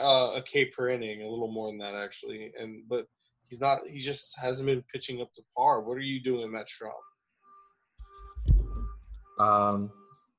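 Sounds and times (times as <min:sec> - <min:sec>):
speech: 0:00.0 - 0:07.1, 0:09.4 - 0:10.0
electronic alarm beeping outside: 0:06.9 - 0:10.3.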